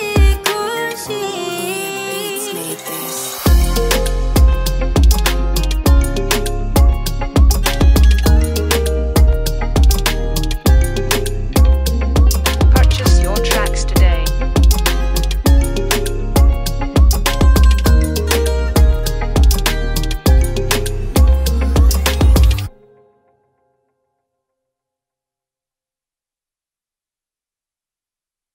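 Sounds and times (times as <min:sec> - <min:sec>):
oriental trap beat with Balkan hip hop instrumental: 0:02.6 - 0:22.7.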